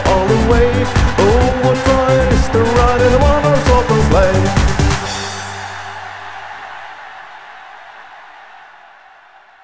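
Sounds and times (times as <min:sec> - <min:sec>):
Christmas song: 0:00.0 - 0:07.6.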